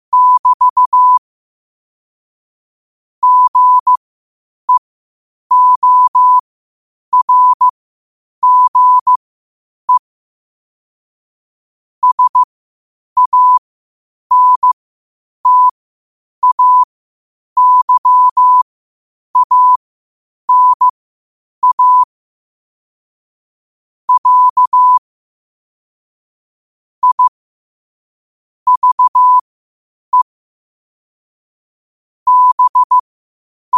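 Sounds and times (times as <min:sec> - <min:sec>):
morse code at 5 wpm: 0:00.1 - 0:01.2, 0:03.2 - 0:04.0, 0:05.5 - 0:06.4, 0:07.1 - 0:07.7, 0:08.4 - 0:09.2, 0:12.0 - 0:12.5, 0:13.2 - 0:13.6, 0:14.3 - 0:14.8, 0:15.4 - 0:15.8, 0:16.4 - 0:16.9, 0:17.6 - 0:18.6, 0:19.4 - 0:19.8, 0:20.5 - 0:20.9, 0:21.6 - 0:22.1, 0:24.1 - 0:25.0, 0:27.0 - 0:27.3, 0:28.7 - 0:29.4, 0:32.3 - 0:33.0.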